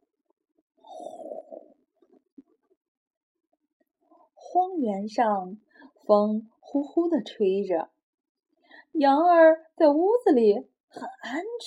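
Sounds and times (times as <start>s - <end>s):
snoring: 0.8s - 1.8s
speech: 4.6s - 8.0s, 8.9s - 11.6s.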